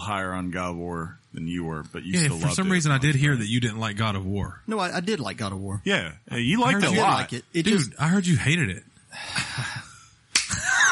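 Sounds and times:
speech: 0.0s - 9.8s
hand clap: 10.3s - 10.6s.

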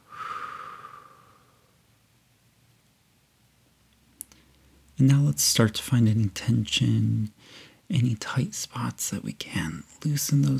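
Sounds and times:
deep breath in through the nose and out through the mouth: 0.0s - 1.8s, 7.4s - 7.8s
speech: 5.0s - 10.5s.

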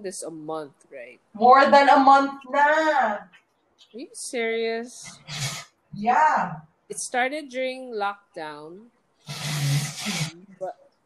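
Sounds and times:
speech: 0.0s - 9.4s, 10.0s - 10.8s
person blowing her nose: 5.0s - 5.7s, 9.3s - 10.4s.

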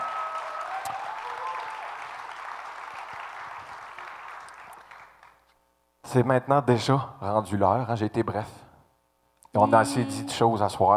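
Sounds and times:
audience applause: 0.0s - 5.4s
speech: 6.1s - 8.6s, 9.5s - 10.9s.

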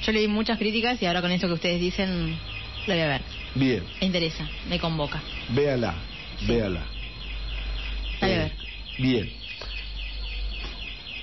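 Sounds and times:
alarm ringing with high-pitched electronic warble: 0.0s - 11.2s
speech: 0.1s - 7.0s, 8.2s - 9.7s.

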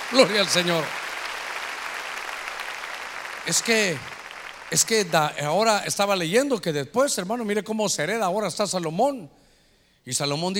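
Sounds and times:
large group clapping hands loudly: 0.0s - 5.8s
speech: 0.1s - 1.0s, 3.4s - 9.4s, 10.0s - 10.5s.

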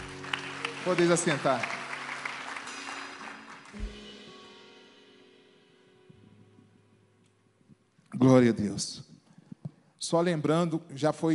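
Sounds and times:
audience applause: 0.0s - 4.0s
speech: 0.8s - 1.8s, 8.2s - 9.1s, 10.0s - 11.3s.

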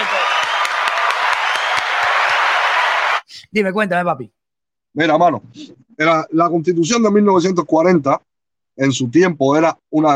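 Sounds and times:
crowd applauding: 0.0s - 3.3s
speech: 3.6s - 4.4s, 5.0s - 10.1s.

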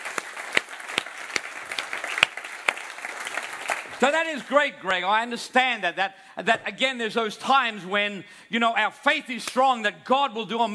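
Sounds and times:
audience applause: 0.0s - 4.6s
speech: 4.0s - 10.7s.

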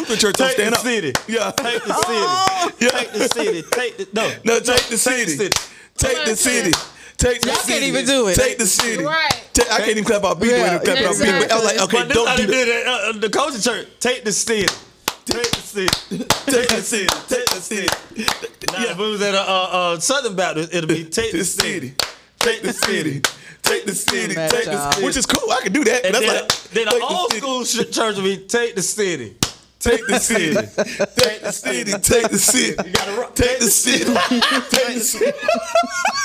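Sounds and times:
laughter: 0.0s - 12.9s, 15.4s - 19.3s, 22.4s - 23.2s, 23.8s - 28.2s, 29.8s - 36.2s
speech: 0.0s - 36.2s
hand clapping off the beat: 0.1s - 3.9s, 4.7s - 5.8s, 6.4s - 7.8s, 8.7s - 9.7s, 14.6s - 18.9s, 21.6s - 25.2s, 26.2s - 27.4s, 29.4s - 29.7s, 31.2s - 31.4s, 32.5s - 33.2s.

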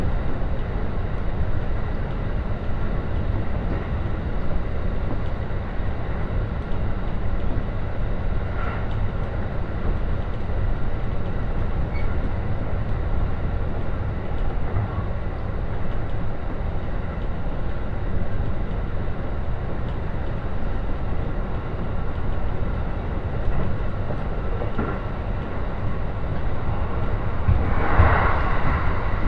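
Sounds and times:
Joban Line train rumble and rattle from Katsuta to Ishioka: 0.0s - 29.2s
Joban Line train squeals: 11.8s - 12.6s.

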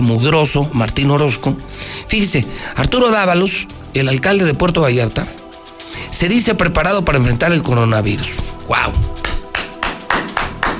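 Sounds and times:
speech: 0.1s - 5.4s, 6.1s - 9.1s
applause: 9.2s - 10.7s.

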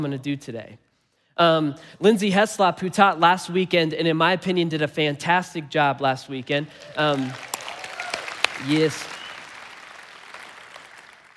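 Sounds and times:
speech: 0.0s - 7.5s, 8.6s - 9.2s
audience clapping: 6.6s - 11.3s.

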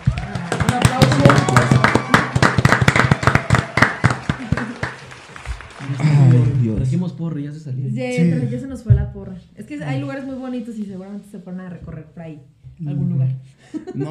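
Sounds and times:
applause, hands clapping: 0.0s - 6.6s
speech: 7.1s - 14.0s
laughter: 13.6s - 14.0s.

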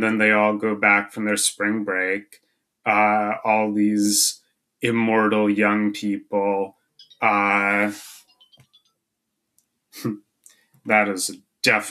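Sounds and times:
speech: 0.0s - 8.2s, 10.0s - 10.2s, 10.8s - 11.8s
cheerful alarm chime: 7.0s - 8.8s.

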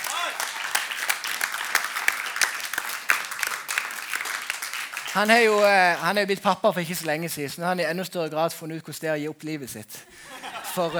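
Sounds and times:
audience applause: 0.0s - 6.3s
laughter: 5.0s - 6.2s, 10.0s - 10.9s
speech: 5.2s - 10.9s.

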